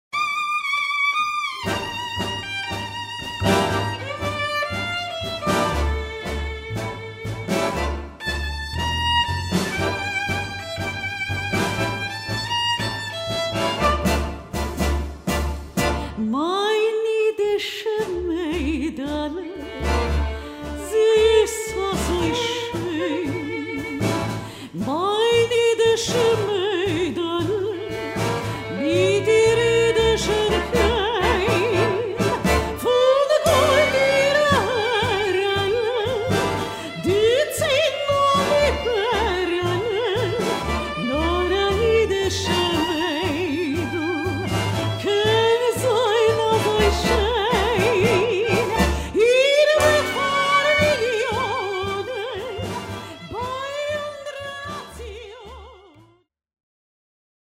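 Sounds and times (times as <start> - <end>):
tango music: 0.1 - 16.9, 17.6 - 56.0.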